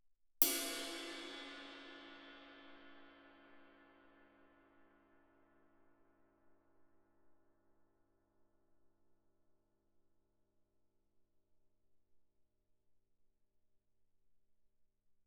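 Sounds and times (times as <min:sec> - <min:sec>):
suspended cymbal crash played with stick: 0:00.4 - 0:03.4.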